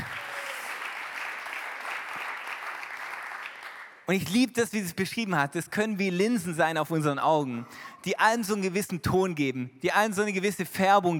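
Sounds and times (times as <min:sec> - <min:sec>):
audience applause: 0:00.0 - 0:04.0
speech: 0:04.1 - 0:11.1.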